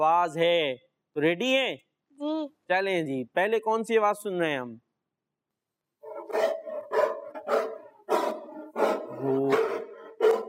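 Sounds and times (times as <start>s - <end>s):
speech: 0.0s - 4.8s, 9.2s - 9.6s
dog barking: 6.0s - 10.4s.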